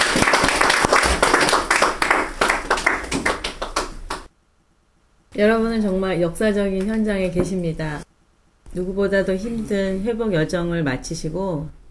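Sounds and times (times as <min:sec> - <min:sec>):
crowd applauding: 0:00.0 - 0:04.3
speech: 0:05.4 - 0:08.1, 0:08.7 - 0:11.8.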